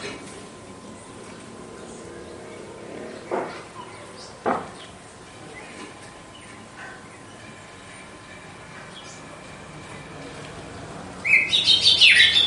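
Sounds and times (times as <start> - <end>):
female red-cowled cardinal singing whistled song: 11.2 - 12.4.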